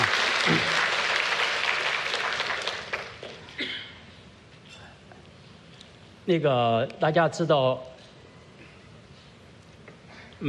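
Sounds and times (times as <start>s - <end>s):
audience applause: 0.0s - 3.4s
speech: 6.3s - 7.9s.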